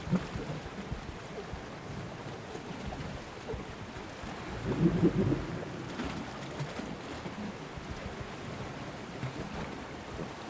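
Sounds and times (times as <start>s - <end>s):
underwater rumble and churning wash near a small boat's hull: 1.4s - 10.4s
grey seal low tonal calls underwater: 4.2s - 6.9s.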